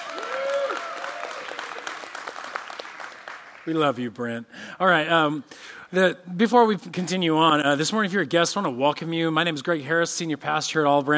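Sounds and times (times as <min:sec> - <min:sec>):
audience clapping: 0:00.0 - 0:04.4
speech: 0:03.7 - 0:11.1.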